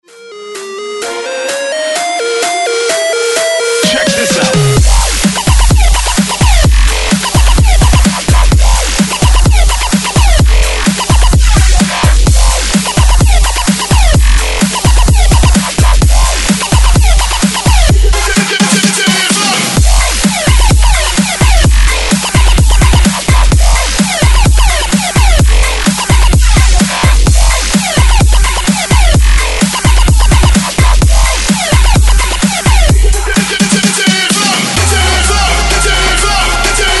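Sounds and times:
breakbeat mix at 128 BPM: 0.0s - 36.9s.

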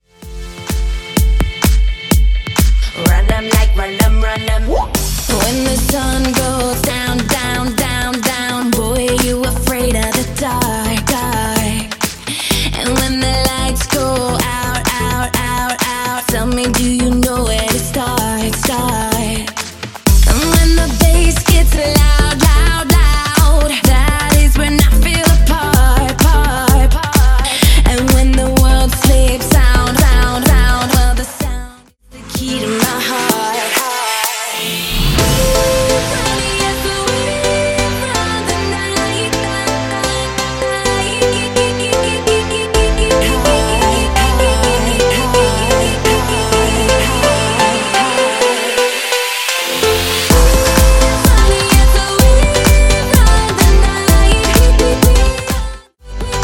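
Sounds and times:
club music at 127 bpm: 0.0s - 56.4s.

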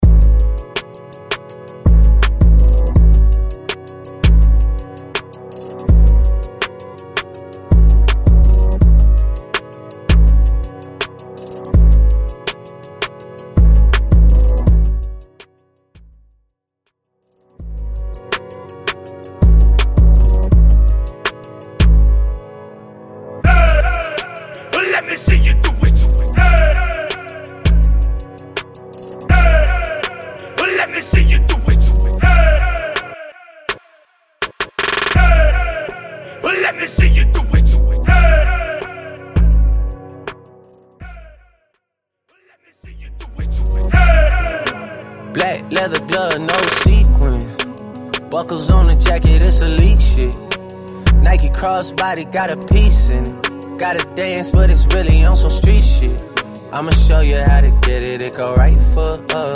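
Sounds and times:
mainstream hype hip hop rap beat: 0.0s - 16.4s, 17.2s - 22.4s, 23.4s - 41.5s, 42.5s - 59.5s.

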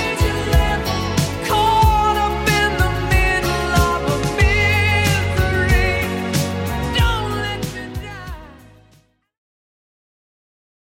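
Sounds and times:
80s Redrum drum machine beat: 0.0s - 8.6s.

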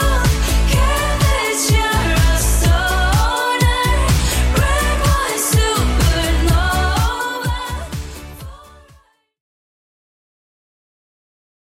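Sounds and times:
Top 40 pop track at 125 bpm: 0.0s - 9.1s.

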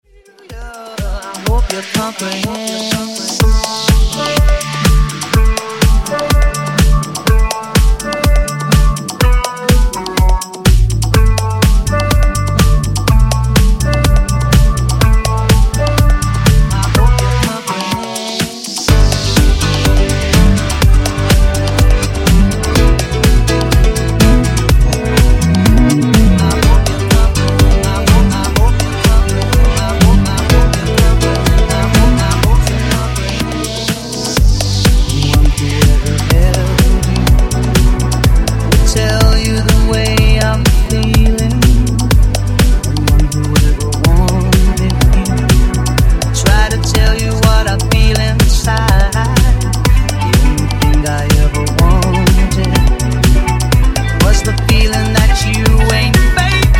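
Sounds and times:
funk nu-disco remix music: 0.0s - 56.7s.

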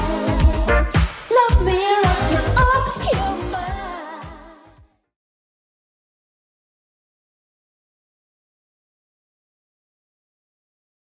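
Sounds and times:
80s-style beat at 110 bpm: 0.0s - 4.6s.

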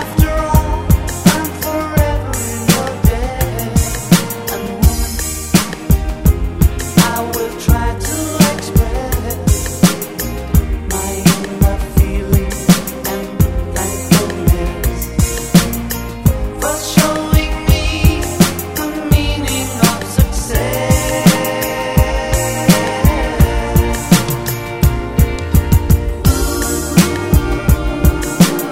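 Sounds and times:
rock music: 0.0s - 28.6s.

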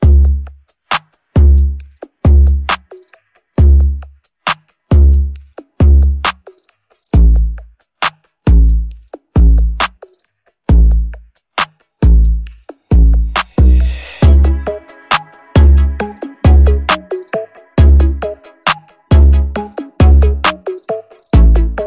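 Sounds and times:
hip hop music: 0.0s - 21.8s.

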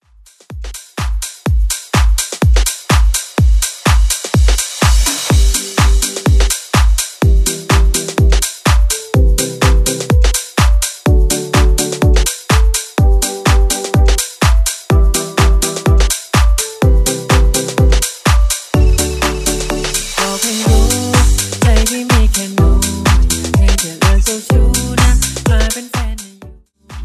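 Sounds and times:
house music: 0.2s - 27.0s.

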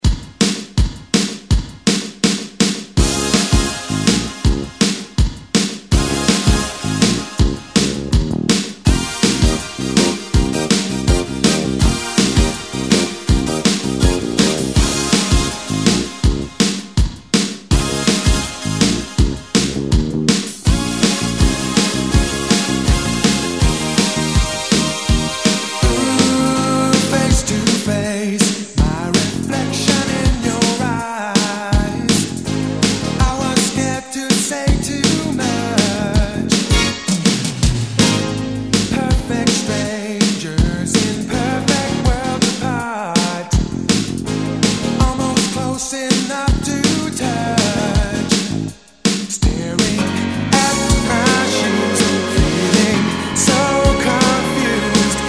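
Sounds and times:
1980s extended music: 0.0s - 55.2s.

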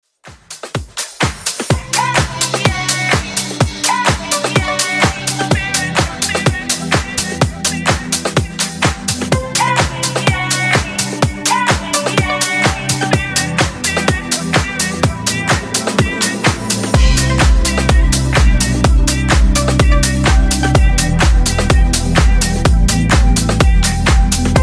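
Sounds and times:
clean funk vocal edit: 1.0s - 24.6s.

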